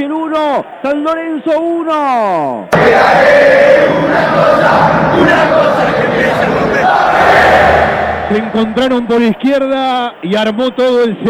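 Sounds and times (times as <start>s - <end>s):
speech: 0.0s - 11.2s
stadium crowd cheering an equalizing goal: 2.8s - 10.6s.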